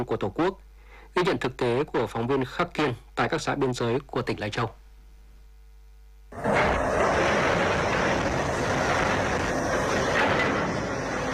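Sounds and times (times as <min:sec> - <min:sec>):
speech: 0:00.0 - 0:04.8, 0:06.3 - 0:06.6
bulldozers at construction site: 0:06.4 - 0:11.3
excavators at construction site: 0:06.4 - 0:11.3.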